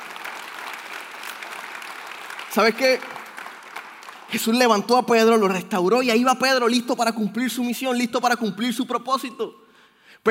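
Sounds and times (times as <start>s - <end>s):
audience applause: 0.0s - 4.6s
speech: 2.6s - 3.2s, 4.3s - 9.6s.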